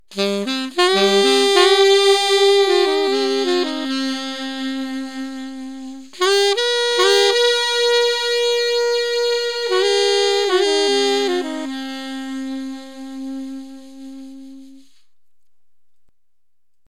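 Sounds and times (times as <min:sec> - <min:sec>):
saxophone: 0:00.0 - 0:15.6.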